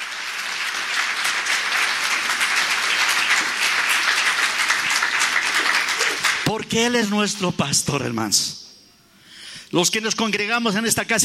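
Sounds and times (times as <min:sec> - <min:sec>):
audience clapping: 0:00.0 - 0:06.7
speech: 0:06.5 - 0:08.6, 0:09.7 - 0:11.2.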